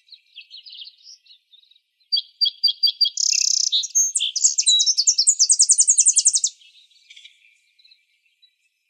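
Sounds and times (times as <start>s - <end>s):
Tennessee Warbler singing: 0.0s - 8.8s.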